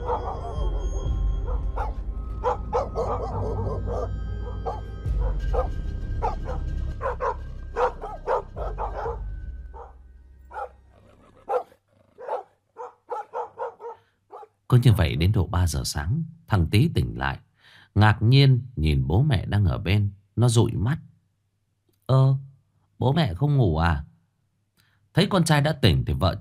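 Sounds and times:
dogs howling in the distance: 0.0 - 14.6
speech: 14.8 - 21.1, 22.1 - 22.4, 23.0 - 24.1, 25.2 - 26.4.

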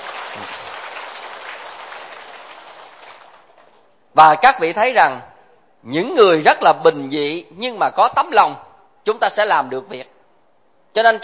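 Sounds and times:
audience applause: 0.0 - 3.8
speech: 4.2 - 10.1, 10.9 - 11.2.

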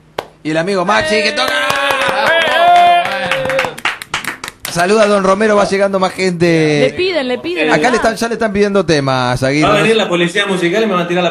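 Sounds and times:
hand claps keeping time with music: 0.2 - 0.4, 1.4 - 5.2
speech: 0.4 - 2.4, 4.7 - 11.2.

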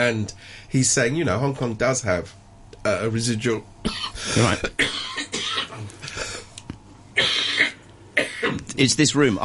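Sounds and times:
speech: 0.0 - 5.2, 8.8 - 9.4
coughing: 3.8 - 6.5, 7.2 - 8.8.

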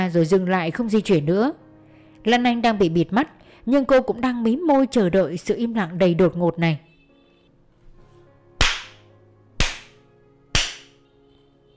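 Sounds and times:
speech: 0.0 - 1.6, 2.2 - 6.9
hard hand slaps: 8.6 - 9.0, 9.6 - 11.0.

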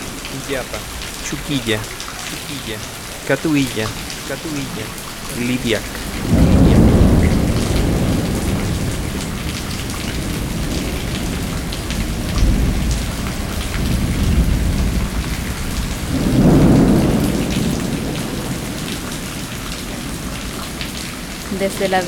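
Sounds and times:
heavy rain: 0.0 - 22.0
speech: 0.4 - 6.4, 21.6 - 22.0
deep rolling thunder: 5.8 - 21.3.

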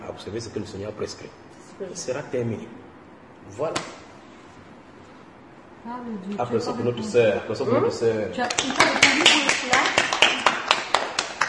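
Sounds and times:
speech: 0.2 - 4.1, 5.8 - 9.8
audience clapping rhythmically: 8.4 - 11.4.

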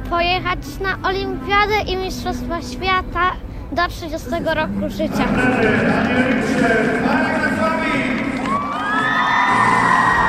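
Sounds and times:
speech: 0.1 - 8.2
dense crowd of excited fans cheering and shouting at an equestrian competition in Kraków: 7.6 - 10.2.

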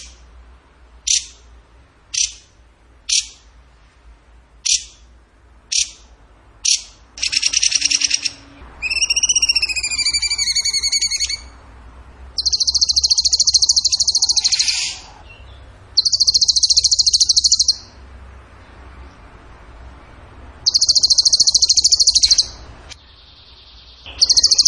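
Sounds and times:
bird trilling: 1.1 - 1.4, 2.2 - 2.5, 4.6 - 5.0, 5.7 - 11.6, 12.4 - 18.0, 20.6 - 22.6, 23.2 - 24.6.

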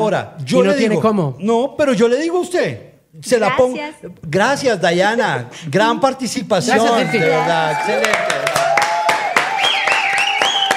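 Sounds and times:
speech: 0.0 - 8.7
applause, standing ovation: 7.6 - 10.7.

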